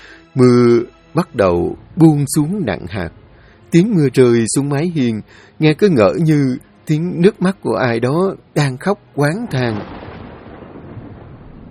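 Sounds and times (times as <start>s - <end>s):
speech: 0.4s - 10.0s
thunder crash: 9.4s - 11.6s.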